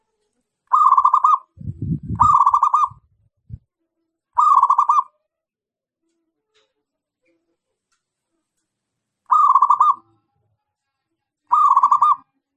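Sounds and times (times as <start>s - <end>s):
zebra dove cooing trill: 0.7s - 3.1s, 4.4s - 5.1s, 9.3s - 10.0s, 11.5s - 12.2s.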